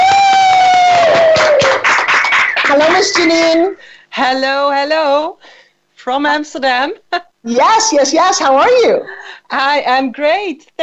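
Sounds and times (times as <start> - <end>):
applause and cheering: 0.0 - 3.6
speech: 3.0 - 10.8.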